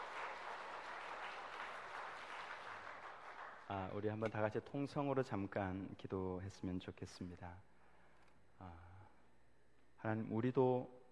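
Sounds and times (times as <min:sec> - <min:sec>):
audience applause: 0:00.0 - 0:03.7
speech: 0:03.7 - 0:07.7, 0:08.6 - 0:08.9, 0:10.0 - 0:11.0.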